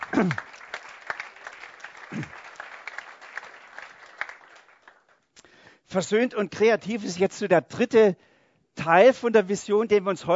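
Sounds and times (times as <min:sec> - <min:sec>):
audience applause: 0:00.0 - 0:05.2
speech: 0:00.2 - 0:00.5, 0:05.9 - 0:10.3.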